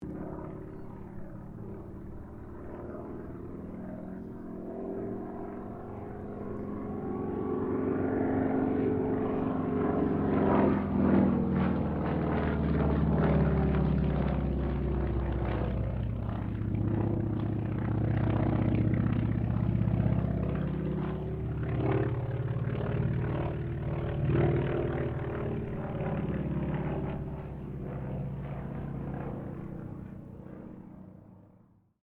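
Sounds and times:
distant CAC Wirraway aircraft passing: 0:00.0 - 0:31.8.

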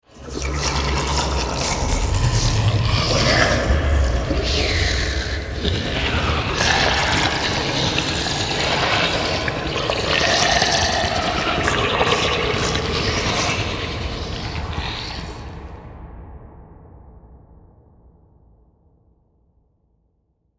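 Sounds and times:
disgusting zombie horde: 0:00.0 - 0:15.7.

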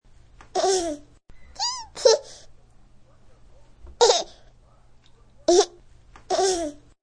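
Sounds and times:
baby laughing: 0:00.5 - 0:02.4, 0:04.0 - 0:04.4, 0:05.5 - 0:06.9.

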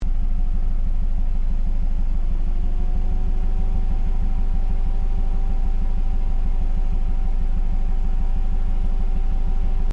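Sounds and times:
Ford Focus engine idling with low exhaust: 0:00.0 - 0:09.9.

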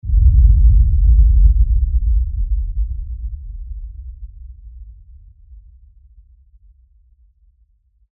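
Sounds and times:
deep LFE explosion shockwave: 0:00.0 - 0:05.9.

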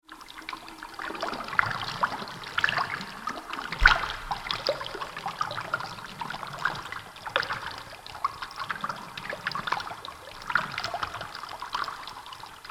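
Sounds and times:
water in a cavern: 0:00.0 - 0:12.6.

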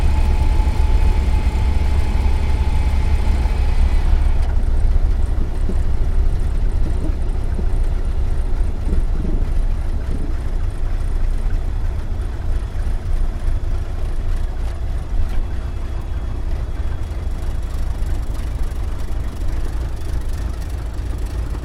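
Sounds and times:
T-28D Trojan aircraft interior engine noise on landing: 0:00.0 - 0:21.6.

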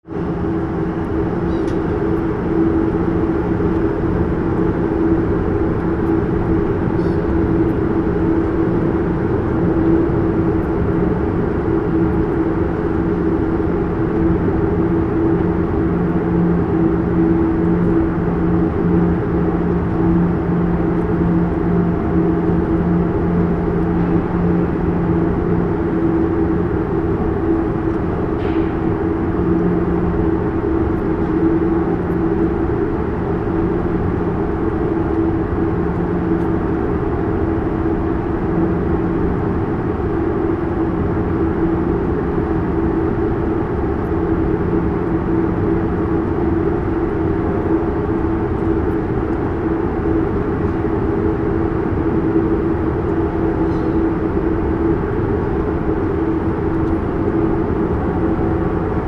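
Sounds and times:
large stationary ferry deck atmosphere: 0:00.1 - 0:59.0.

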